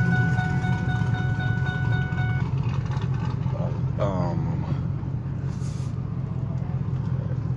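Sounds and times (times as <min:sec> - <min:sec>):
high whine: 0:00.0 - 0:02.6
vehicles passing on a street in Dallas: 0:00.0 - 0:07.5.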